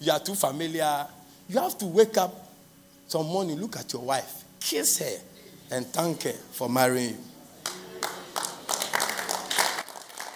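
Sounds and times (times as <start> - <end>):
speech: 0.0 - 2.4, 3.1 - 7.3
audience clapping: 7.6 - 10.3.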